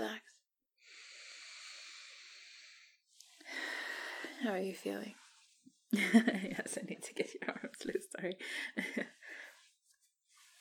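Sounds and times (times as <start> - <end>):
patient breathing: 0.8 - 4.4, 8.4 - 9.7
speech: 4.4 - 5.2, 5.9 - 9.2.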